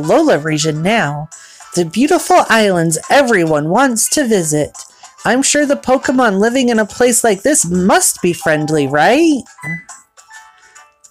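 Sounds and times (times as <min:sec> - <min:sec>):
speech: 0:00.0 - 0:10.0
doorbell ringing with electronic chime tones: 0:09.5 - 0:10.0.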